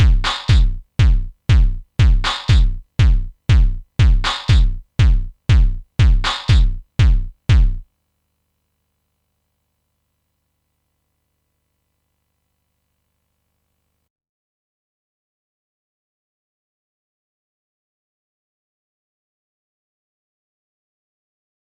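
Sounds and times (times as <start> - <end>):
hardcore kick drum: 0.0 - 7.8.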